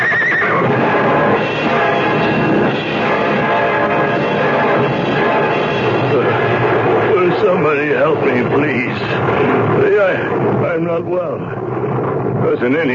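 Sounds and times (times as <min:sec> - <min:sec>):
two hurt runaway horses neighing and whinnying in distress: 0:00.0 - 0:00.7
dense loud wash of noise: 0:00.0 - 0:12.9.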